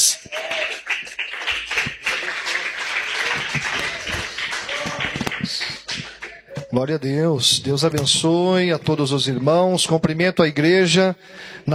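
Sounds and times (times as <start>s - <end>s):
audience applauding: 0.0s - 6.6s
speech: 6.7s - 11.7s.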